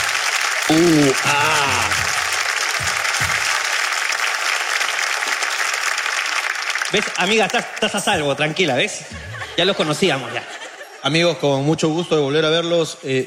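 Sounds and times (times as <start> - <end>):
audience applauding: 0.0 - 10.4
speech: 0.7 - 1.7, 6.9 - 13.2
laughter: 7.8 - 12.0.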